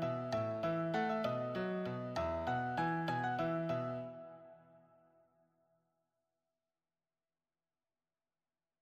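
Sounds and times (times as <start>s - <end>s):
solo piano: 0.0s - 5.0s.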